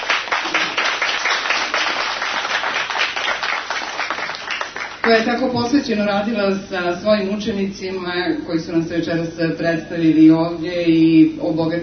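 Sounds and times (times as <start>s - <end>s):
audience applause for a teacher at an evening program: 0.0s - 5.2s
speech: 5.1s - 11.8s.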